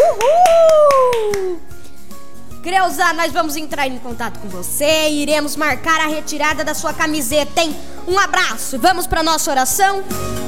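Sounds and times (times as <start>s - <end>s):
person cheering: 0.0s - 1.7s
few people clapping for a prize winner: 0.0s - 1.8s
speech: 2.8s - 10.4s.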